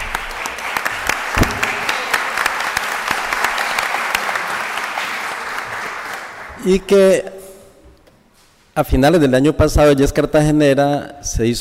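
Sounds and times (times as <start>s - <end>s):
audience clapping: 0.0s - 7.0s
speech: 6.6s - 7.3s, 8.8s - 11.5s.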